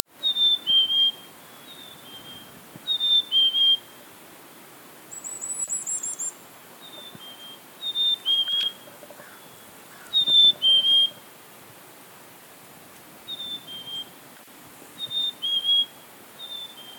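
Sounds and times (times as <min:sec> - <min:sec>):
black-capped chickadee whistled two-note phrases: 0:00.2 - 0:03.9, 0:06.9 - 0:08.8, 0:10.1 - 0:11.2, 0:13.3 - 0:14.1, 0:15.0 - 0:16.9.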